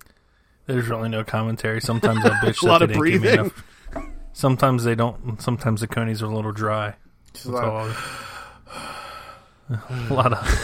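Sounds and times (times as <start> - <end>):
speech: 0.7 - 3.7, 4.4 - 8.8, 9.7 - 10.6
laughter: 1.8 - 4.2, 9.8 - 10.6
heavy breathing: 7.8 - 9.7.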